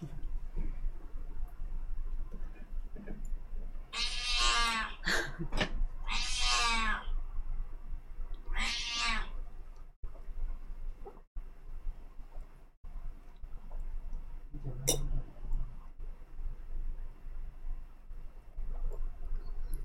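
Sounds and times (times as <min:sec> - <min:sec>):
low steady hum: 0:00.0 - 0:19.8
cat meowing: 0:03.9 - 0:05.0, 0:06.0 - 0:07.2, 0:08.5 - 0:09.4.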